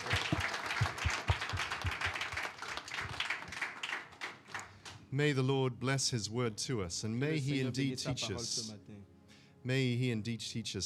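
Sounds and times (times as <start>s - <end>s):
scattered applause from a church congregation for a translator: 0.0s - 5.0s
speech: 5.1s - 10.8s.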